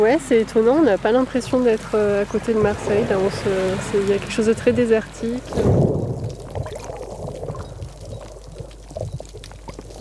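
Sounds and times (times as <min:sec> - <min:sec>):
speech: 0:00.0 - 0:06.1
surf washing against coastal rocks near Marseille: 0:01.9 - 0:07.9.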